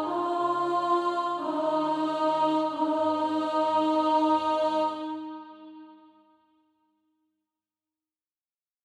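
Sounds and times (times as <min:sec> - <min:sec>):
soprano singing SATB practice music: 0:00.0 - 0:06.0.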